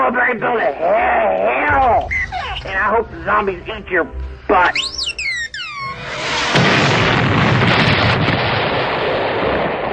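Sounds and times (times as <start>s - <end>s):
speech: 0.1s - 5.0s
falling whistles: 4.7s - 6.1s
space temple exploding in a loud sustained rumbling roar: 6.0s - 9.9s.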